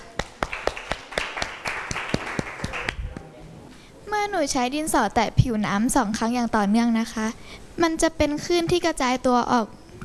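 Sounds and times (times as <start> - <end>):
classroom applause for a presenting group: 0.0 - 3.2
speech: 4.2 - 9.8.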